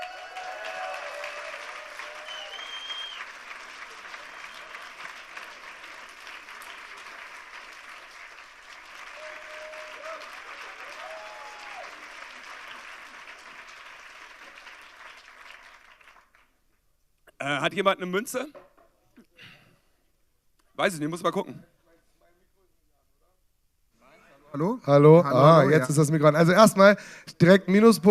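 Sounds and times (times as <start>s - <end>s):
audience applause: 0.0s - 16.6s
speech: 17.4s - 18.6s, 20.8s - 21.7s, 24.6s - 28.1s.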